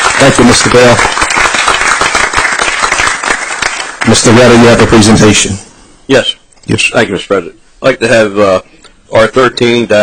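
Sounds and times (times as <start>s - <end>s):
audience applause at a city council meeting: 0.0s - 4.9s
speech: 0.2s - 1.2s, 4.1s - 10.0s.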